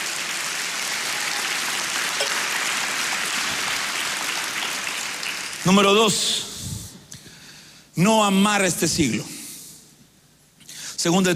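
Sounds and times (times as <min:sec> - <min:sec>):
audience clapping hands: 0:00.0 - 0:06.2
speech: 0:05.6 - 0:06.5, 0:08.0 - 0:09.3, 0:11.0 - 0:11.3.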